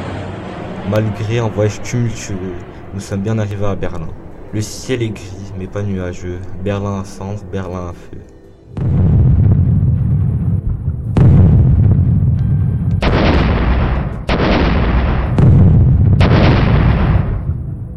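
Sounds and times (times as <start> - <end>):
speech: 0.9 - 9.0
artillery barrage in a besieged city: 8.8 - 17.9.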